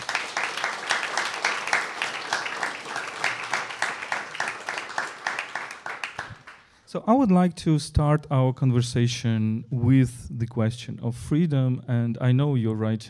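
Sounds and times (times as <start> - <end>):
audience applause: 0.0 - 6.7
speech: 6.9 - 13.0.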